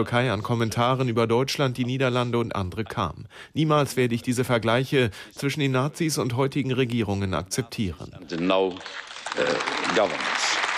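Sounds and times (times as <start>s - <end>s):
speech: 0.0s - 10.6s
applause from members of the European Parliament: 8.0s - 10.7s.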